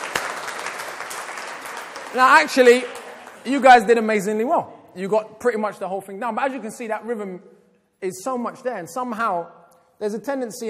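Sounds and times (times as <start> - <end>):
audience applause: 0.0 - 3.7
speech: 2.1 - 10.6.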